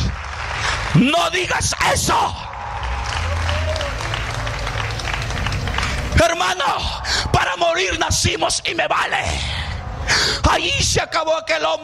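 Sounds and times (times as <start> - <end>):
congregation applauding during a Spanish-language sermon: 0.0 - 8.2
speech: 1.0 - 2.5, 6.2 - 11.8
low hum: 2.0 - 10.5.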